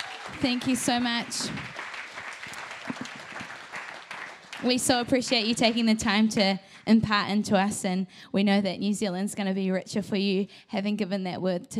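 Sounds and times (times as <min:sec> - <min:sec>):
congregation at a church service in New Zealand clapping for a visiting pastor: 0:00.0 - 0:06.5
speech: 0:00.4 - 0:01.8, 0:04.6 - 0:11.7.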